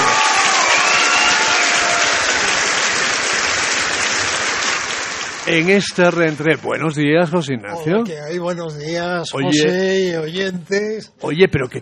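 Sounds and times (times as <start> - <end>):
applause: 0.0 - 6.7
speech: 5.5 - 11.8.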